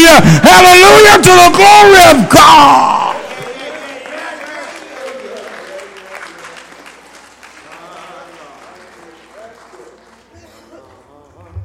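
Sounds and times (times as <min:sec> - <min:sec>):
speech: 0:00.1 - 0:02.9
audience clapping hands in praise: 0:02.9 - 0:11.1.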